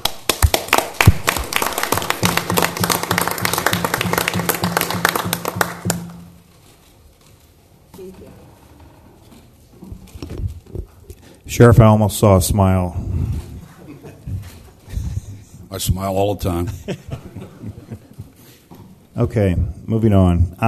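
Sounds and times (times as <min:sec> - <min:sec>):
audience round of applause: 0:00.0 - 0:06.2
speech: 0:11.6 - 0:13.1, 0:15.8 - 0:17.2, 0:19.2 - 0:20.6
laughter: 0:13.6 - 0:15.5, 0:16.6 - 0:18.6.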